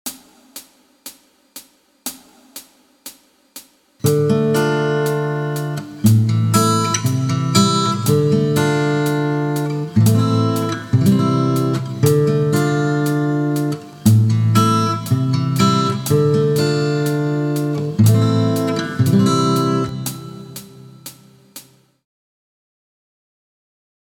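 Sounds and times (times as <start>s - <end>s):
guitar licks: 4.0s - 21.9s.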